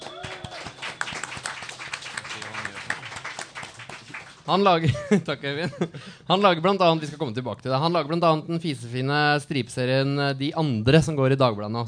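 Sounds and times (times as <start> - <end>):
audience applause: 0.0 - 4.5
speech: 4.5 - 11.8
laughter: 4.8 - 6.1.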